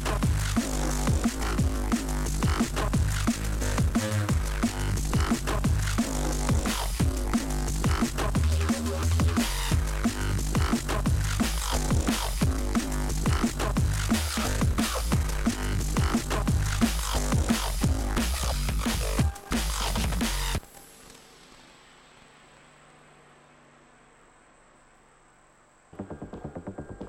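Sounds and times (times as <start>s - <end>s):
weedy bass drum: 0.0s - 20.6s.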